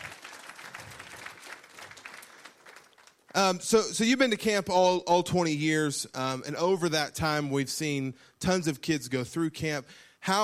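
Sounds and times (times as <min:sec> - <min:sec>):
audience clapping hands: 0:00.0 - 0:03.5
speech: 0:03.4 - 0:10.4.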